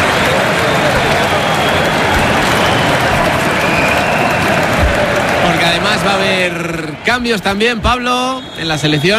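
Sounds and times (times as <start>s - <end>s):
applause: 0.0s - 7.0s
speech: 6.5s - 9.1s.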